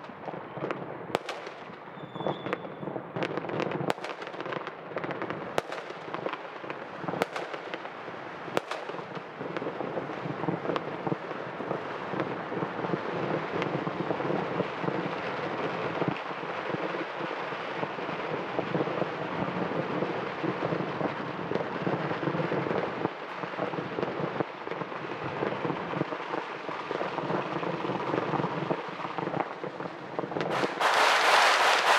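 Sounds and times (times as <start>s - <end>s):
fireworks and firecrackers crackling: 0.0s - 31.9s
sharper firework bangs: 30.5s - 31.9s.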